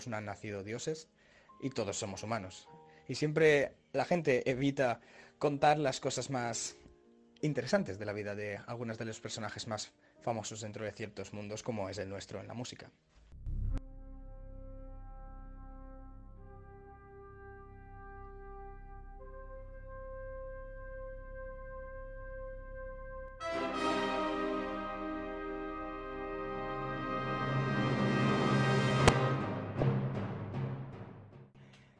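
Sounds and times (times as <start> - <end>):
speech: 0.0 - 6.8, 7.4 - 13.6
famous orchestral theme tune: 13.8 - 31.6.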